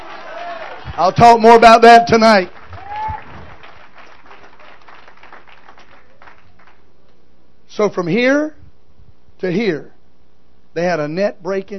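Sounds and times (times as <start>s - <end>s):
audience clapping hands: 0.0s - 6.9s
speech: 1.0s - 2.6s, 7.8s - 8.6s, 9.4s - 9.9s, 10.8s - 11.7s.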